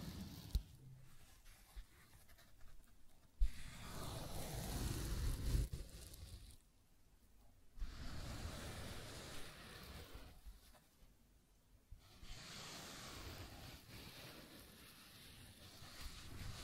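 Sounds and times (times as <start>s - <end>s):
rough scratching and tracing strokes: 0.0s - 6.6s, 7.8s - 10.8s, 12.0s - 16.6s.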